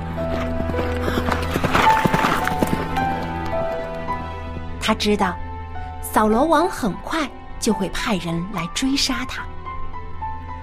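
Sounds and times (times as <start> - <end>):
horse galloping at full speed: 0.0 - 4.0
sustained musical tones: 0.0 - 4.8
speech: 4.9 - 5.4, 6.2 - 9.6.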